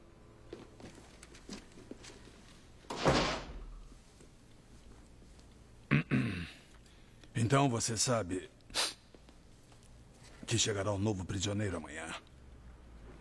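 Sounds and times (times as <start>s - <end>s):
door creaking and rumbling as pushed shut: 2.9s - 3.9s
speech: 7.4s - 8.6s, 10.5s - 12.3s.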